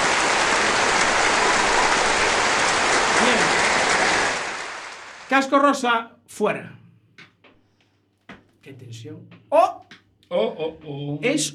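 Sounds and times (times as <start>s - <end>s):
studio audience applause: 0.0s - 5.3s
speech: 5.3s - 6.8s, 8.6s - 11.5s.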